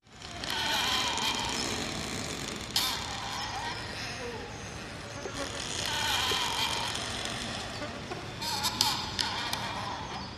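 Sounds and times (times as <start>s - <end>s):
creaking trees with branches rubbing together: 0.0s - 10.3s.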